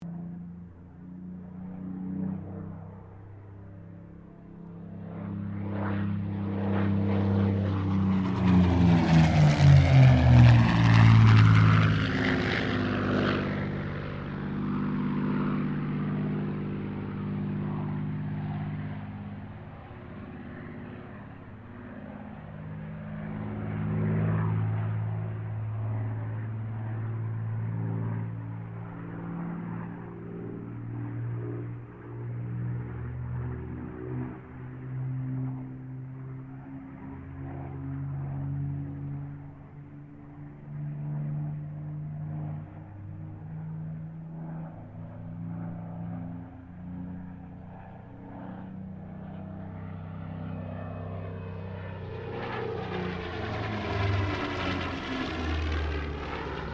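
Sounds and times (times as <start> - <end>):
Supermarine Spitfire Mk XVI aircraft passing: 0.0 - 56.7.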